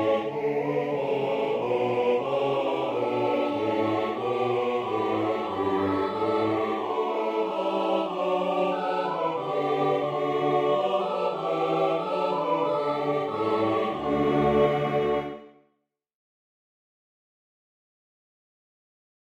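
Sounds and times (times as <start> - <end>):
SATB choir and congregation singing: 0.0 - 15.5
organ playing: 2.9 - 14.9.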